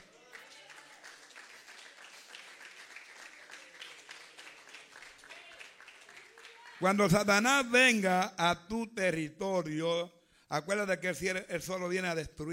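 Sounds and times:
audience applause: 0.0 - 7.0
speech: 6.8 - 12.5.

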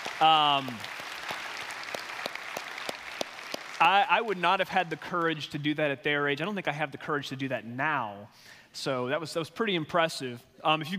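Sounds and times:
audience applause: 0.0 - 5.4
speech: 0.2 - 0.9, 3.8 - 10.9.

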